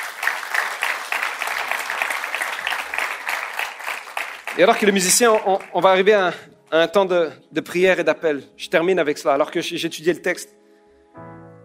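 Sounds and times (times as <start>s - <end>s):
audience applause: 0.0s - 5.9s
speech: 4.6s - 10.6s.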